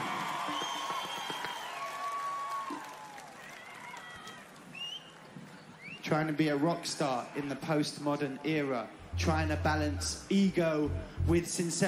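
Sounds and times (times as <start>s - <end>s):
audience applauding: 0.0s - 4.8s
speech: 6.1s - 11.8s.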